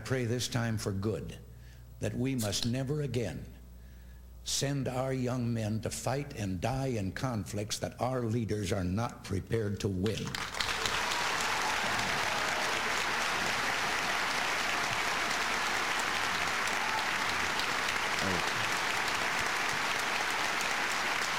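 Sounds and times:
speech: 0.1s - 3.6s, 4.4s - 10.6s
large audience applauding: 10.2s - 21.3s.

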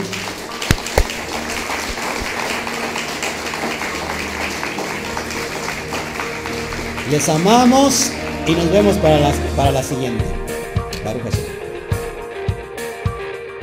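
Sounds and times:
audience applause: 0.0s - 9.3s
speech: 7.1s - 10.4s, 11.0s - 11.5s.

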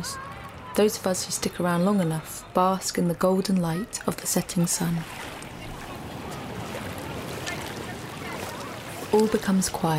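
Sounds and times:
speech: 0.8s - 5.4s, 9.1s - 9.9s
roar of the Celtic Sea: 4.4s - 9.9s.

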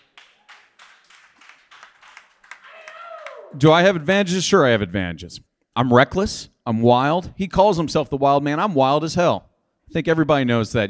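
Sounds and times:
small group clapping: 0.0s - 3.7s
speech: 3.5s - 10.8s.

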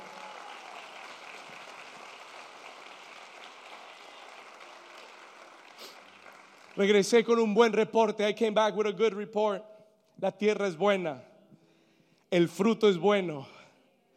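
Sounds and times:
audience loud applause: 0.0s - 7.4s
speech: 6.8s - 11.3s, 12.3s - 13.5s.

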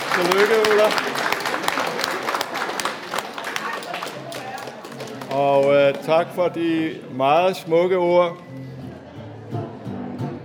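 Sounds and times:
audience applause for a birthday: 0.0s - 6.3s
speech: 0.2s - 1.4s, 5.4s - 8.7s.

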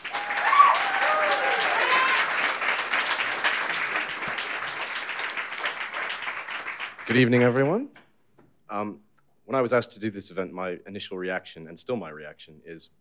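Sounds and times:
audience applause at a poetry reading event: 0.0s - 7.8s
speech: 7.1s - 8.0s, 8.7s - 13.0s.

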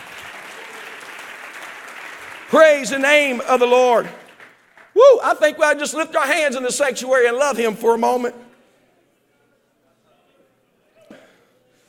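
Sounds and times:
audience clapping hands: 0.0s - 5.2s
speech: 2.5s - 4.2s, 5.0s - 8.5s.

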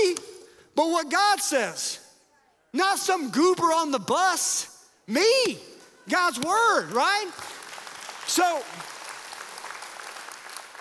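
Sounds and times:
speech: 0.8s - 2.0s, 2.7s - 7.5s, 8.3s - 8.9s
church congregation clapping: 6.2s - 10.7s.

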